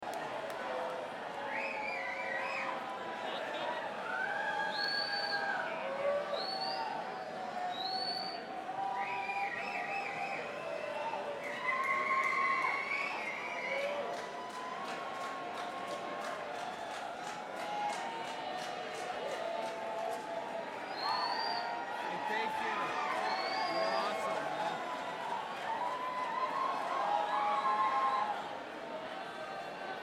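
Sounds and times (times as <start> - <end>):
crowd: 0.0 - 30.0.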